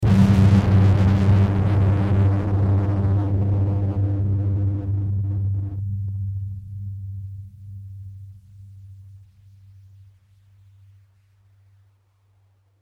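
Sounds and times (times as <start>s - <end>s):
bomb exploding: 0.0s - 5.8s.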